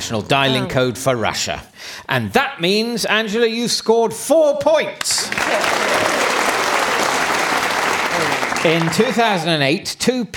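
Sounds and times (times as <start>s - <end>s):
speech: 0.1s - 6.2s, 8.6s - 10.3s
audience clapping: 5.0s - 9.6s.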